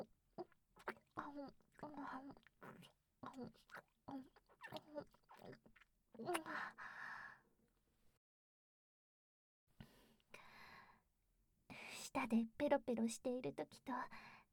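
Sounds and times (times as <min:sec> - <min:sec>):
wet chewing of something soft yet crunchy: 0:00.8 - 0:06.5
speech: 0:01.3 - 0:07.0, 0:12.1 - 0:14.4.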